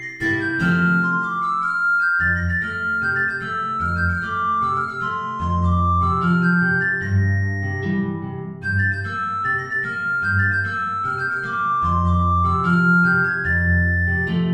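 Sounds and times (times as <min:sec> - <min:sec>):
guitar: 0:00.0 - 0:14.5
soprano recorder: 0:00.0 - 0:14.5.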